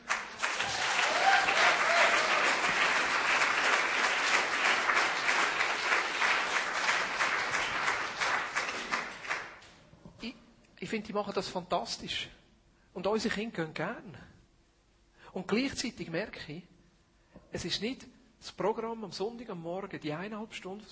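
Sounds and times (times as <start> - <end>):
audience applause: 0.0 - 9.7
speech: 10.9 - 12.4, 13.0 - 14.3, 15.3 - 16.7, 17.5 - 20.9.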